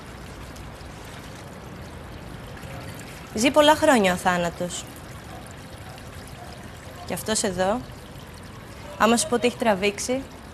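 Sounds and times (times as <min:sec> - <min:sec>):
water being poured onto dry soil: 0:00.0 - 0:10.5
speech: 0:03.3 - 0:05.0, 0:07.1 - 0:08.0, 0:09.0 - 0:10.4.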